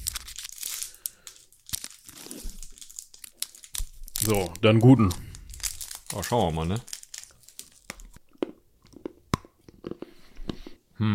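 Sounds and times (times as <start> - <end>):
chocolate bar wrapper being torn open: 0.0 - 8.2
speech: 4.2 - 5.2, 6.1 - 6.9.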